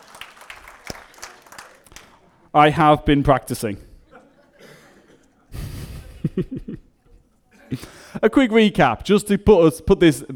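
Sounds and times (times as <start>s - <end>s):
small audience applause: 0.0s - 2.4s
speech: 2.6s - 3.9s, 8.2s - 10.3s
laughter: 4.1s - 8.0s.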